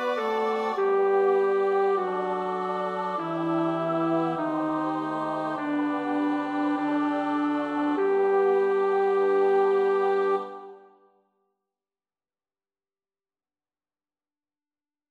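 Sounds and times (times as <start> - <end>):
bass choir part practice: 0.0 - 10.8.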